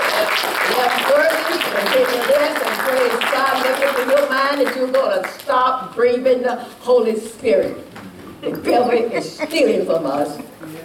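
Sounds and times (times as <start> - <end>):
congregation clapping hands in praise to God: 0.0 - 5.5
speech: 0.4 - 10.8.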